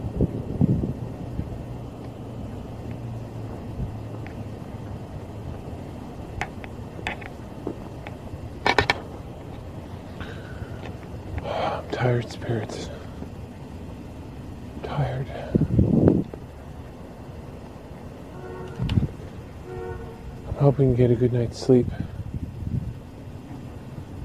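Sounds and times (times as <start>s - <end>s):
faint train: 0.0s - 24.2s
steady low rumble of traffic: 0.0s - 24.2s
short sharp clicks and knocks: 6.3s - 9.7s
speech: 12.0s - 13.0s, 20.7s - 22.1s.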